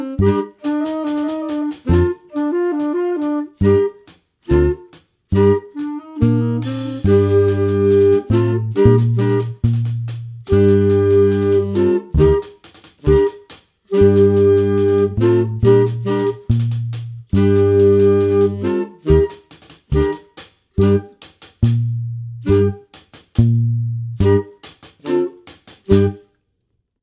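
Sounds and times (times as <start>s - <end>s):
all instruments playing together: 0.0s - 26.2s.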